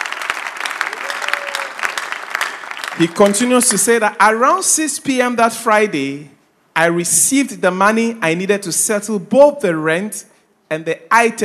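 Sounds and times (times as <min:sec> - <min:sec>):
crowd clapping steadily: 0:00.0 - 0:04.0
speech: 0:03.0 - 0:11.4.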